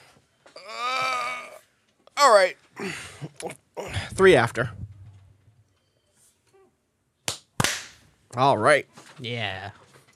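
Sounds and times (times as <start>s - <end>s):
speech: 2.3s - 4.8s, 8.4s - 9.8s
single loud hand clap: 7.2s - 8.0s.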